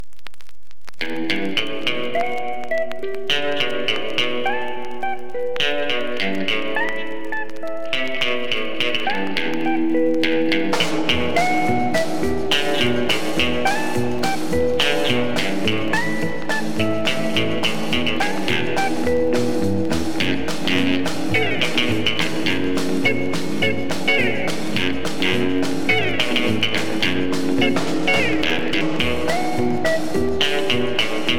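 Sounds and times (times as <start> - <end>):
lonely guitar: 1.0 - 31.3.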